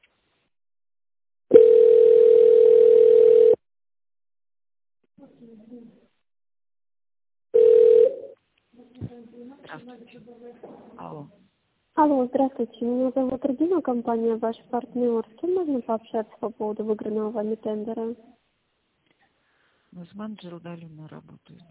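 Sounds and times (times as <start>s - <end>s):
telephone ringback tone while waiting: 1.5s - 3.6s, 7.6s - 8.4s
speech: 9.8s - 11.4s, 12.0s - 18.4s, 20.0s - 21.6s.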